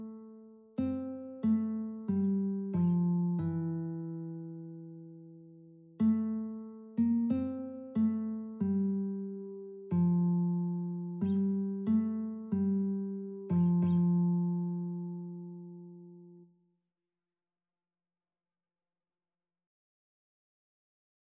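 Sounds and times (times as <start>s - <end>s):
guitar playing a Christmas carol: 0.0s - 16.5s.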